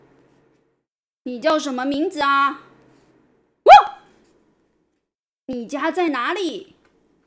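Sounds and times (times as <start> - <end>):
speech: 1.3 - 2.7, 5.5 - 6.7
lost dog barking: 3.7 - 4.1.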